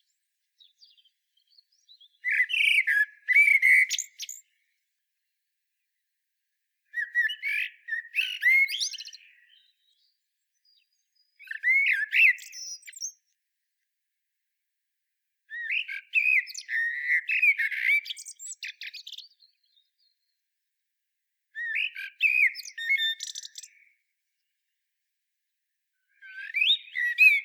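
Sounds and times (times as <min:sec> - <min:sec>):
common blackbird singing: 0:00.0 - 0:04.8, 0:06.9 - 0:13.4, 0:15.5 - 0:20.4, 0:21.6 - 0:24.5, 0:26.1 - 0:27.4.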